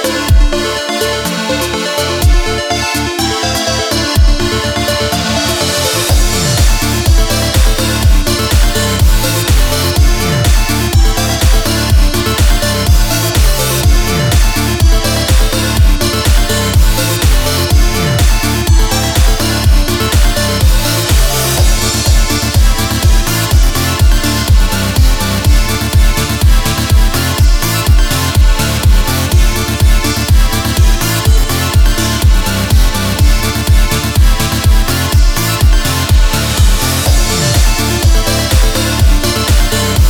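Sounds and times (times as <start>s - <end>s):
slide bass: 0.1s - 40.0s.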